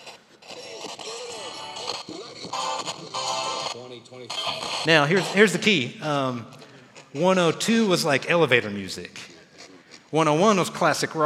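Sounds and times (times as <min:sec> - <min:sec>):
radio static while tuning analog dial: 0:00.0 - 0:05.7
speech: 0:04.0 - 0:09.3, 0:10.1 - 0:11.2.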